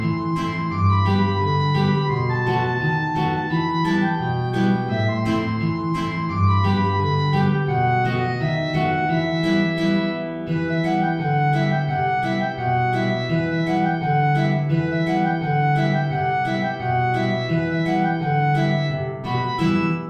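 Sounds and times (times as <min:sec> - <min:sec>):
clarinet in B flat: 0:00.0 - 0:20.0
guitar: 0:00.0 - 0:20.0.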